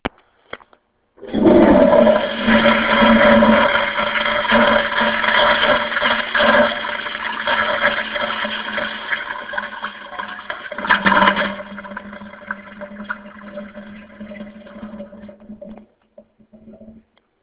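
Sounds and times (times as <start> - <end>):
toilet flush: 1.2 - 15.9.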